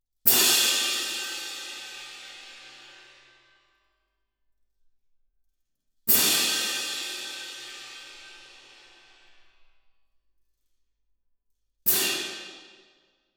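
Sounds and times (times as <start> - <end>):
percussion: 0.2 - 3.6, 6.0 - 9.8, 11.6 - 13.2.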